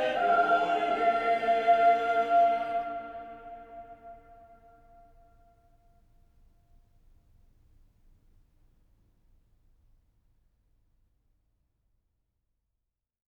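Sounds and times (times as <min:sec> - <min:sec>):
cathedral choir singing a Christmas carol: 0:00.0 - 0:04.4.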